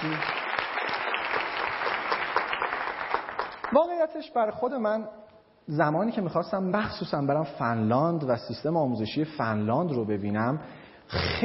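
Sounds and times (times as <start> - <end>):
audience applause at a talk on education systems: 0.0 - 3.8
speech: 3.7 - 11.4.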